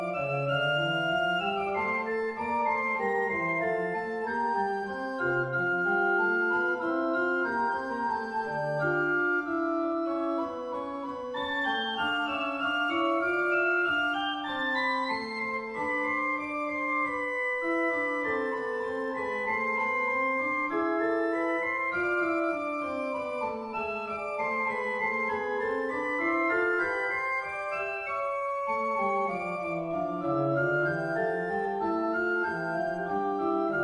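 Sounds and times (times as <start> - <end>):
pipe organ playing a fugue: 0.0 - 33.8.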